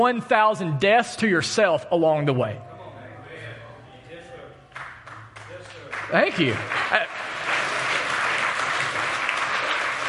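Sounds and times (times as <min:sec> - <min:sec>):
speech: 0:00.0 - 0:02.7, 0:06.1 - 0:07.2
audience applause: 0:04.8 - 0:10.0.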